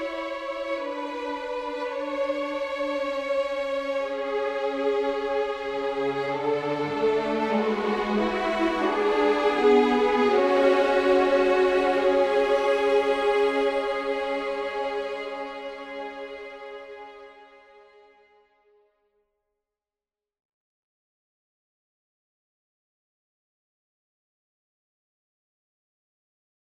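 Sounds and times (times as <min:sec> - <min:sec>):
soaring strings: 0:00.0 - 0:18.4.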